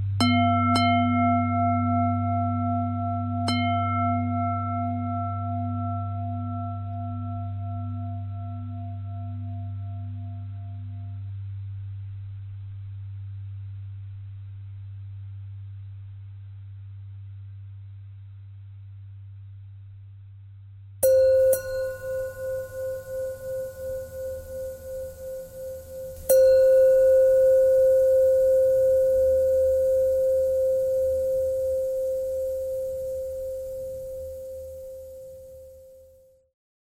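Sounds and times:
bell: 0.2s - 10.0s, 21.1s - 36.1s.

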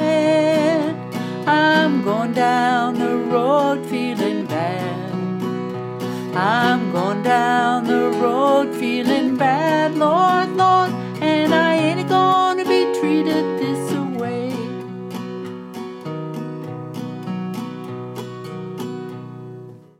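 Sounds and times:
woman singing blues: 0.0s - 15.0s.

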